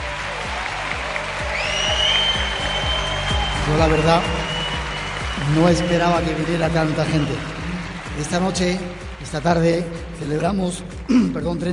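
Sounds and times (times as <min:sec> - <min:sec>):
audience applause: 0:00.0 - 0:11.1
speech: 0:03.7 - 0:04.4, 0:05.4 - 0:07.6, 0:08.2 - 0:11.7.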